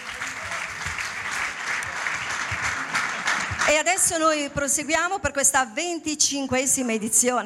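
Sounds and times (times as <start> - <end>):
audience applause: 0.0 - 4.2
speech: 3.7 - 7.4.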